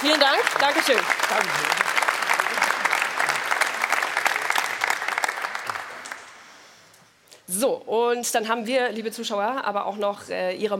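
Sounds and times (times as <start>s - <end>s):
crowd applauding: 0.0s - 6.5s
speech: 0.1s - 1.9s, 7.7s - 10.7s.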